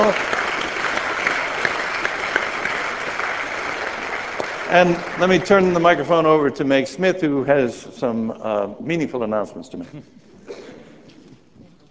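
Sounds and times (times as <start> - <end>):
speech: 0.0 - 0.4, 4.7 - 10.2
crowd applause: 0.0 - 6.5.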